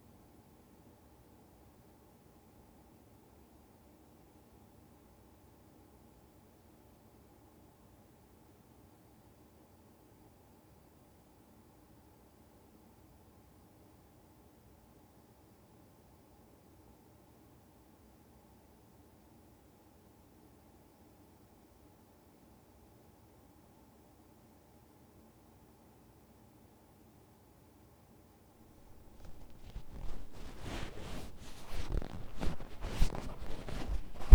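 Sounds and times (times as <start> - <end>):
left ear cleaning ASMR: 28.8 - 34.3.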